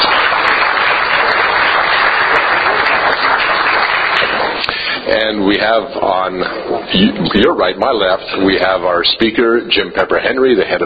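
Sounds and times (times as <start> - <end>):
round of applause: 0.0 - 5.0
speech: 5.2 - 10.8.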